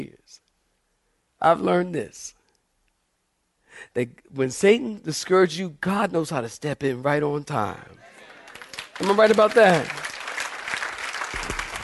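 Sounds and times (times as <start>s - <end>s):
speech: 1.4s - 2.4s, 3.8s - 8.1s, 9.0s - 10.1s
audience clapping: 8.1s - 11.8s.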